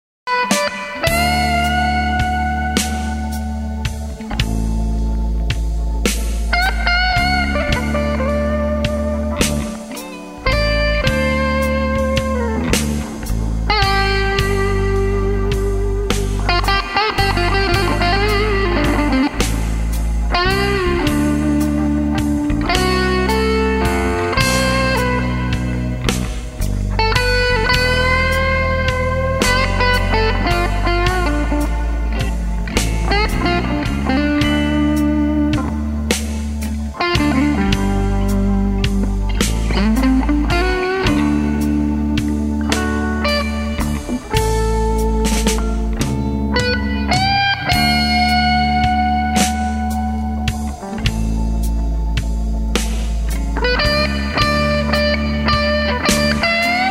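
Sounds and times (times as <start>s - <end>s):
blues music: 0.3s - 56.8s.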